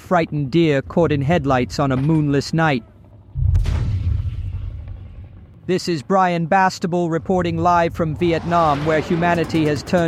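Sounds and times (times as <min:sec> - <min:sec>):
speech: 0:00.1 - 0:02.9, 0:05.7 - 0:10.0
gunshot echoing across hillsides: 0:03.4 - 0:05.3.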